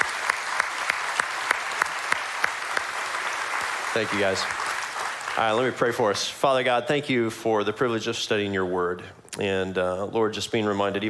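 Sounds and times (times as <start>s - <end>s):
audience applause: 0.0s - 6.0s
speech: 4.0s - 4.8s, 5.4s - 11.0s.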